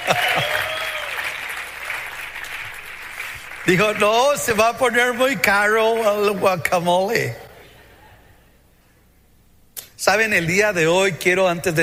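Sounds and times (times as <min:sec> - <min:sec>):
audience applause: 0:00.0 - 0:04.6
speech: 0:00.1 - 0:00.4, 0:03.7 - 0:07.4, 0:10.1 - 0:11.8.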